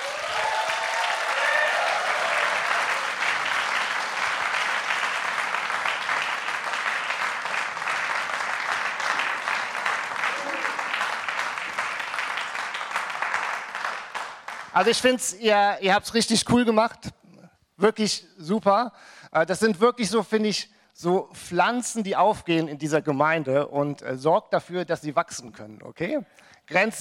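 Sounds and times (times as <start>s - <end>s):
whistles and cheers: 0.0s - 3.4s
crowd clapping for the band: 0.0s - 15.3s
speech: 14.8s - 17.2s, 17.8s - 26.9s.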